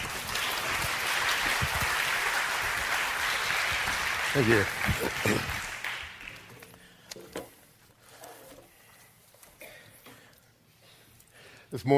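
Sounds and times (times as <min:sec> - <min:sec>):
audience clapping: 0:00.0 - 0:06.8
speech: 0:04.4 - 0:05.6, 0:11.8 - 0:11.9.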